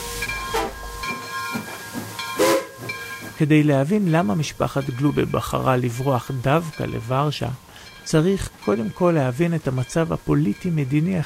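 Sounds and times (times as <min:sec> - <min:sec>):
steady high steam train whistle tone: 0:00.0 - 0:02.9
steam train bound for Warsaw hissing in short bursts: 0:00.0 - 0:11.2
speech: 0:03.4 - 0:11.2.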